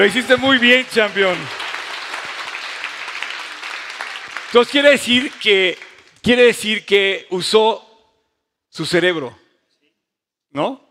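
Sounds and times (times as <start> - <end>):
speech: 0.0 - 1.6, 4.5 - 7.8, 8.7 - 9.4, 10.5 - 10.8
applause: 0.0 - 6.5.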